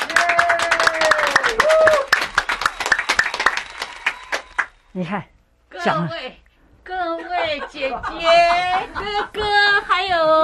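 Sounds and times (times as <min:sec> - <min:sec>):
wavering whoop: 0:00.0 - 0:02.2
audience applause welcoming a guest: 0:00.0 - 0:04.8
speech: 0:05.0 - 0:10.4
laughter: 0:07.1 - 0:10.4.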